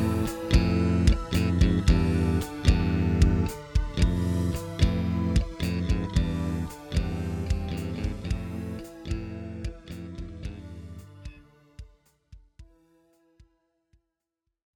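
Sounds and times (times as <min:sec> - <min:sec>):
bass-heavy song: 0:00.0 - 0:11.5.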